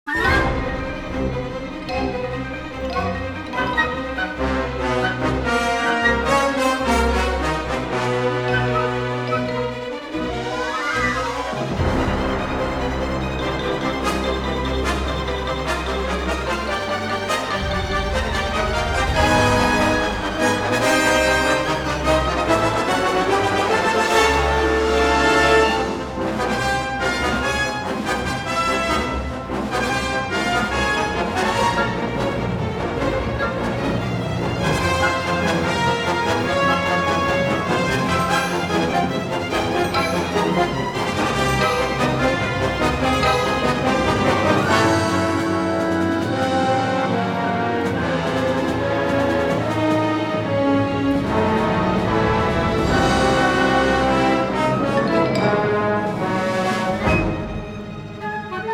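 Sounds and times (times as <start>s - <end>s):
Chinese action music: 0.1s - 58.7s.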